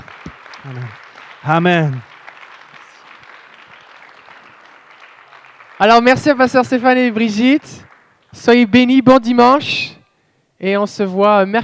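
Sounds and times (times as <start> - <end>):
audience applauding: 0.0 - 8.6
speech: 0.6 - 2.1, 5.8 - 10.0, 10.6 - 11.6.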